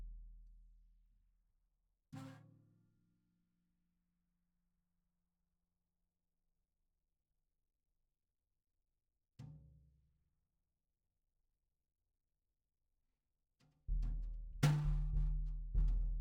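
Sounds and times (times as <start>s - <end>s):
snare drum recorded from the bottom: 14.0s - 16.1s.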